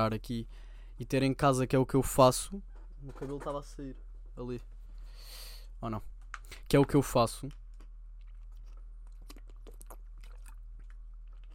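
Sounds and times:
speech: 0.0s - 4.7s, 5.3s - 7.6s
person drinking water: 7.8s - 11.5s.

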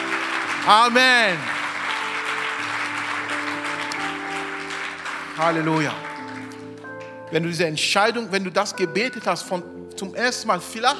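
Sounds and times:
audience applause: 0.0s - 7.2s
organ or keyboard chords: 0.0s - 10.9s
speech: 0.7s - 1.6s, 5.4s - 6.1s, 7.3s - 10.9s.

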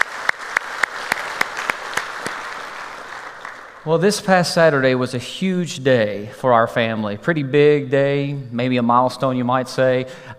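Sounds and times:
church congregation applauding welcoming a family into a Sunday service: 0.0s - 4.5s
speech: 3.8s - 10.3s.

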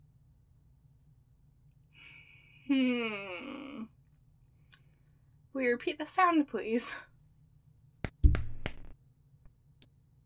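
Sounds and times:
speech: 2.7s - 3.9s, 5.6s - 7.1s
sharp slaps: 8.0s - 8.9s
dull low thud: 8.1s - 8.9s
faint light taps: 8.1s - 8.9s.

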